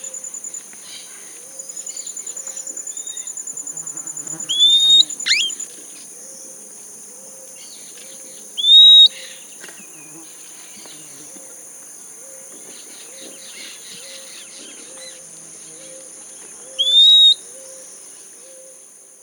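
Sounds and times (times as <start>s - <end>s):
bird whistling: 4.5s - 5.6s, 8.6s - 9.1s, 16.8s - 17.4s.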